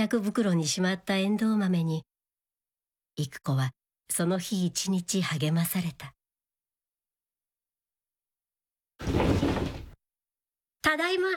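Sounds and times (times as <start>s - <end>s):
speech: 0.0s - 2.1s, 3.2s - 6.2s, 10.8s - 11.3s
sliding kitchen door pushed open: 9.0s - 10.0s.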